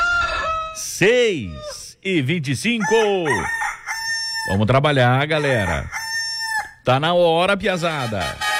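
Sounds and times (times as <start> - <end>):
rooster crowing: 0.0 - 0.8, 2.8 - 4.6, 5.3 - 6.8
speech: 0.8 - 3.6, 4.4 - 6.0, 6.8 - 8.5.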